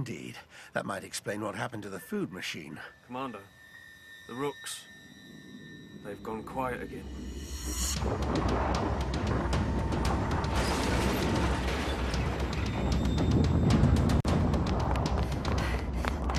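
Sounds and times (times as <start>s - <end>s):
speech: 0.0s - 3.6s, 4.3s - 5.0s, 6.0s - 9.4s
mechanical rumble of a spaceship starting to move: 4.9s - 16.3s.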